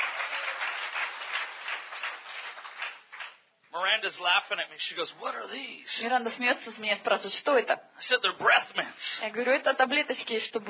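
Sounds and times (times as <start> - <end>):
audience hand clapping: 0.0 - 3.5
speech: 4.0 - 10.6.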